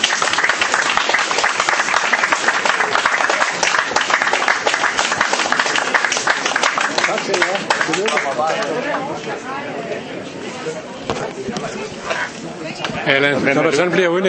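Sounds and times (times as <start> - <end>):
long round of applause: 0.0 - 9.1
speech: 8.3 - 14.2.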